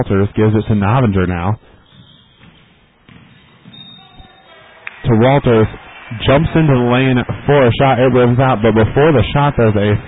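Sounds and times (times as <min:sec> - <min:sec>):
speech: 0:00.0 - 0:01.7, 0:05.1 - 0:10.0
noise: 0:00.0 - 0:10.0
basketball dribbled across half court during a game: 0:01.8 - 0:04.8.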